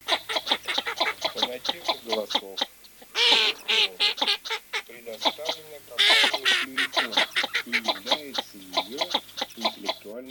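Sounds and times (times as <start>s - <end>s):
northern shoveler call: 0.0s - 10.1s
laughter: 0.4s - 2.4s, 3.2s - 10.2s.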